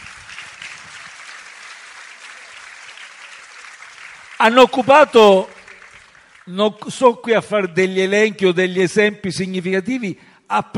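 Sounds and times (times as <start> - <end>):
audience applause: 0.0 - 6.6
speech: 4.4 - 5.6, 6.5 - 10.7.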